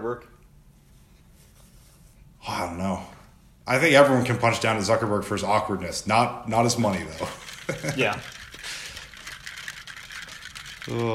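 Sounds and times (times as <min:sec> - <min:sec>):
speech: 0:00.0 - 0:00.4, 0:02.5 - 0:03.1, 0:03.7 - 0:08.4, 0:10.9 - 0:11.1
stirring a water bottle: 0:06.6 - 0:11.1.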